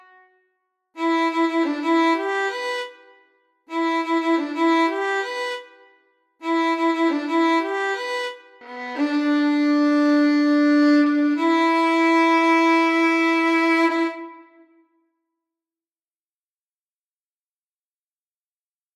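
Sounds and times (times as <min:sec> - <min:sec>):
violin: 0:00.0 - 0:00.4, 0:01.0 - 0:14.8.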